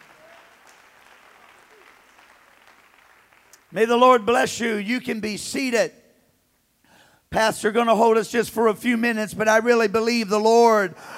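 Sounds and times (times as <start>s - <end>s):
audience clapping hands in praise: 0.0s - 4.0s
speech: 3.7s - 6.0s, 7.3s - 11.1s.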